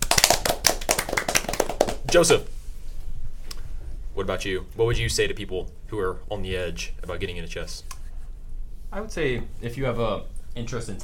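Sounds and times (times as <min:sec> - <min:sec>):
round of applause: 0:00.0 - 0:02.2
speech: 0:02.1 - 0:02.6, 0:04.2 - 0:08.0, 0:08.9 - 0:11.0.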